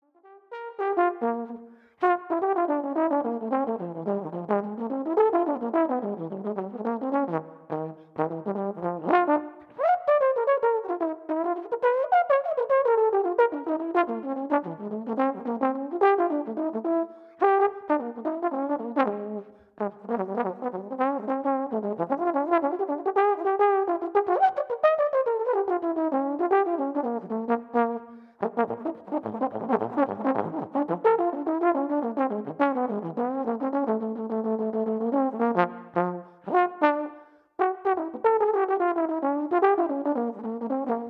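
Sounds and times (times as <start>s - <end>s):
blues etude: 0.4s - 41.0s.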